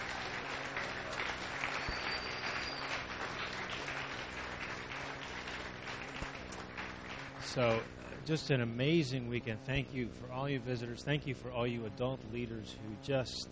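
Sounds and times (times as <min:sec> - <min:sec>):
audience applause: 0:00.0 - 0:07.9
speech: 0:07.5 - 0:13.5.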